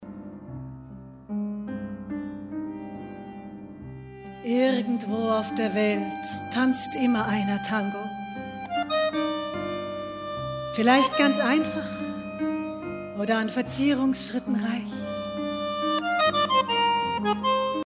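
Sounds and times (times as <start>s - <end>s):
tango music: 0.0s - 17.8s.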